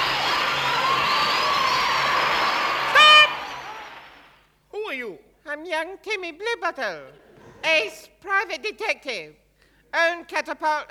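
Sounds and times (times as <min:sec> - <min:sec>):
recorded crowd applause played from a record: 0:00.0 - 0:04.4
speech: 0:05.6 - 0:10.8.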